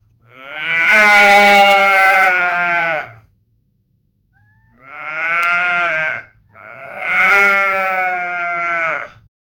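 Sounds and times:
sheep bleating: 0.3s - 3.2s, 4.7s - 9.3s.

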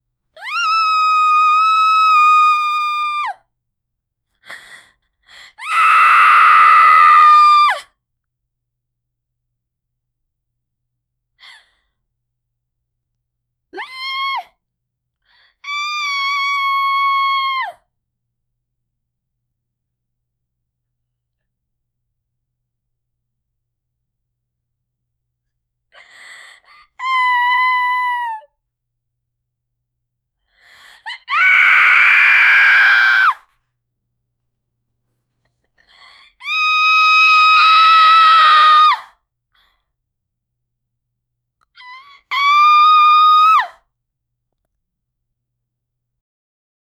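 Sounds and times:
girl screaming for help in fear: 0.4s - 3.4s, 5.6s - 7.8s, 13.8s - 14.5s, 15.7s - 17.8s, 27.0s - 28.5s, 31.2s - 33.4s, 36.4s - 39.1s, 41.8s - 43.7s.

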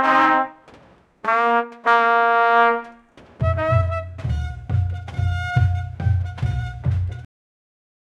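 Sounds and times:
heavy military brass music: 0.0s - 7.3s.

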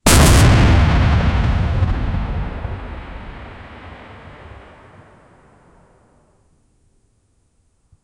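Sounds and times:
nuclear blast: 0.0s - 6.0s.

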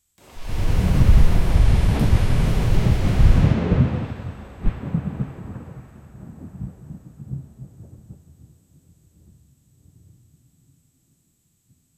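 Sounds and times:
distant cosmic lightning: 0.2s - 8.5s.

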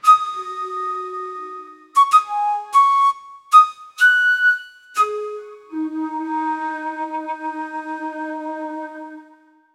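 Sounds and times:
soft and regal Javanese instrument: 0.0s - 9.7s.

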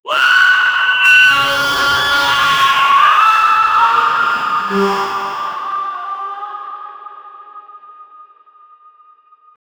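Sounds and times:
cyborg sound: 1.2s - 6.4s.

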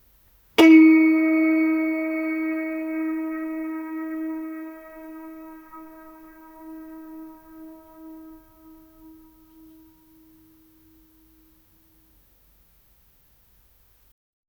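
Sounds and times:
single note on a traditional instrument: 0.6s - 10.6s.

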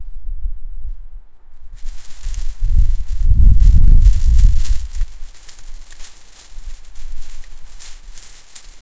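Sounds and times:
forest ambience: 1.3s - 8.9s
swinging on a tree: 1.8s - 8.9s.

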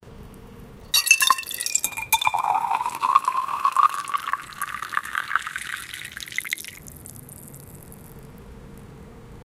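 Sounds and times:
water being poured into a glass: 1.0s - 8.1s.

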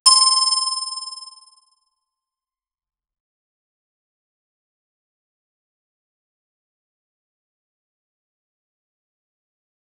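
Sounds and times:
Mario video game coin sound: 0.1s - 1.6s.

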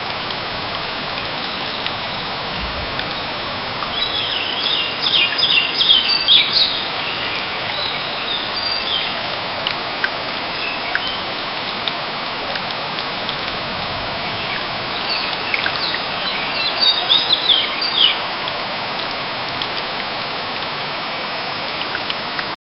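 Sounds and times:
jungle ambience: 0.0s - 22.0s.

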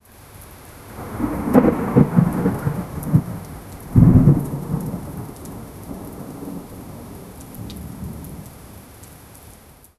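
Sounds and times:
thunderstorm: 0.9s - 8.5s.

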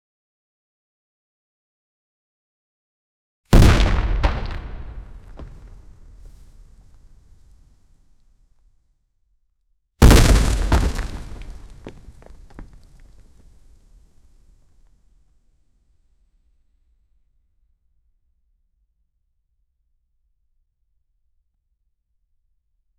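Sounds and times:
explosion: 3.5s - 6.9s, 10.0s - 13.4s
man falling: 3.6s - 6.5s, 10.0s - 13.0s.

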